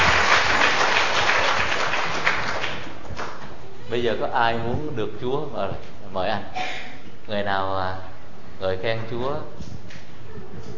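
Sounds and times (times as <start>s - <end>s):
audience applause: 0.0s - 3.4s
speech: 3.9s - 9.8s.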